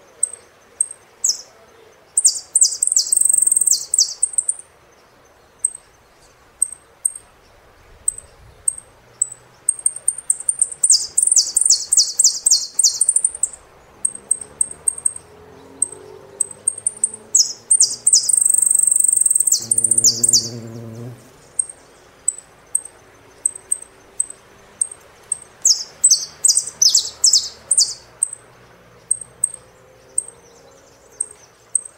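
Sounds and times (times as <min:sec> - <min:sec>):
saffron finch singing: 0:00.2 - 0:01.6, 0:02.2 - 0:04.6, 0:05.6 - 0:28.5, 0:29.0 - 0:31.9.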